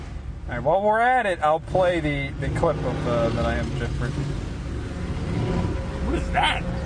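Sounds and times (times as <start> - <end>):
speech: 0.5 - 4.5, 6.1 - 6.8
three-wheeled trike motorcycle passing by: 2.9 - 6.8.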